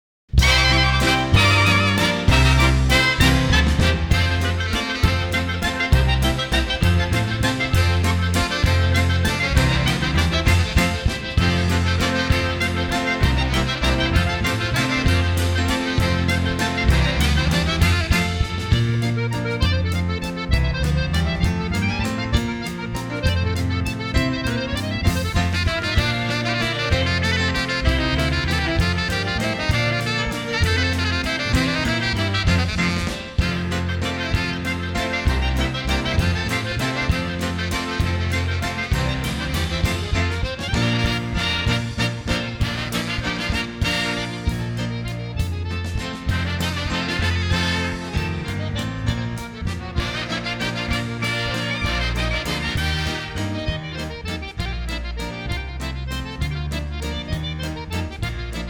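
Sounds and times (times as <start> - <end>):
Polish oberek folk dance music: 0.3 - 58.6.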